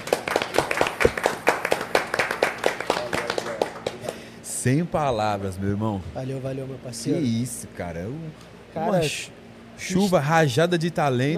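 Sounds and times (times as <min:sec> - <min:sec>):
round of applause: 0:00.0 - 0:04.3
speech: 0:04.6 - 0:11.3.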